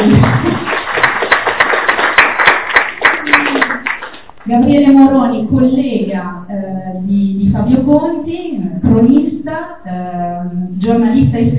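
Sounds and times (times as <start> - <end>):
audience applause: 0.0 - 4.4
speech: 5.5 - 11.5.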